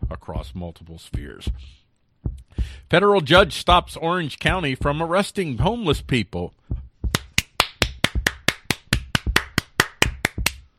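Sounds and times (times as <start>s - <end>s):
speech: 0.1s - 1.8s, 2.6s - 6.7s
sarcastic hand clapping: 7.1s - 10.7s.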